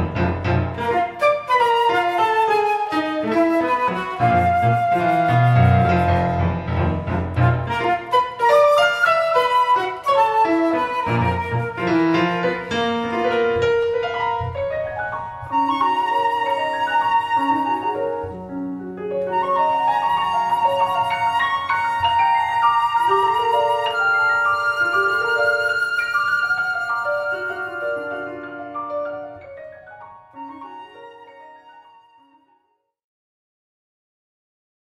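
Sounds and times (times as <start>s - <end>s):
flute: 0.0s - 32.8s
piano: 0.0s - 32.9s.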